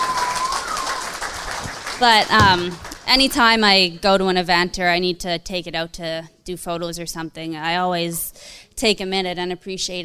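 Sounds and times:
audience applause: 0.0s - 3.1s
speech: 2.0s - 10.0s.

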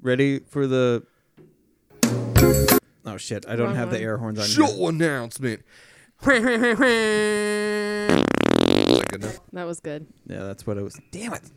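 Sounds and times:
speech: 0.0s - 1.1s, 2.5s - 8.2s, 9.1s - 11.5s
fart sound effect: 8.1s - 9.4s.

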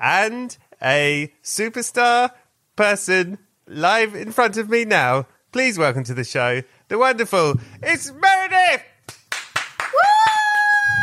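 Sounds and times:
speech: 0.0s - 8.9s
hand claps: 9.0s - 10.6s.

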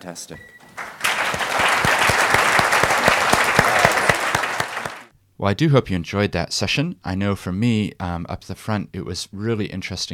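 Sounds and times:
speech: 0.0s - 0.6s, 5.4s - 10.1s
audience applause for a panel: 0.8s - 5.1s.

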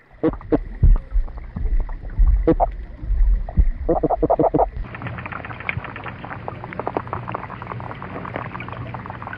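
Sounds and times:
fish thumps and grunting pulses underwater: 0.0s - 9.3s.

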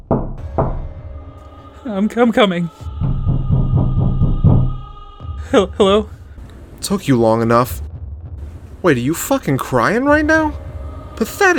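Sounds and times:
knocking on a door: 0.0s - 1.0s, 3.0s - 4.9s
speech: 1.8s - 3.0s, 5.5s - 6.2s, 6.8s - 7.8s, 8.8s - 10.6s, 11.2s - 11.5s.

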